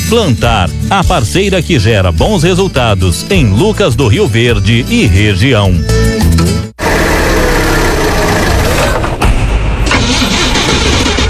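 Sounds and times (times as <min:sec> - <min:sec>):
speech: 0:00.1 - 0:06.6
car engine sputtering, failing to start: 0:06.8 - 0:11.2.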